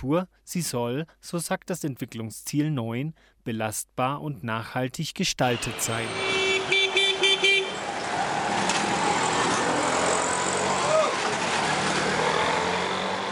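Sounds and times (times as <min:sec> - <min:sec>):
speech: 0:00.0 - 0:06.8
short loud car horn toots: 0:05.5 - 0:07.9
steady car traffic rumbling on a busy street: 0:05.5 - 0:13.2.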